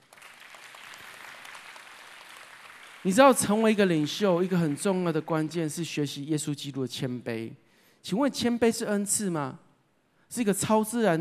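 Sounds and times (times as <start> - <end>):
audience applause: 0.0 - 3.4
speech: 3.0 - 9.6, 10.3 - 11.1.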